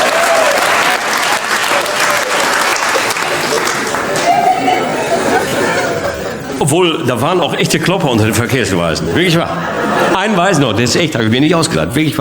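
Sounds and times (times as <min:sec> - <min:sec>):
audience applause: 0:00.0 - 0:06.1
laughter: 0:01.2 - 0:11.9
speech: 0:06.7 - 0:12.1.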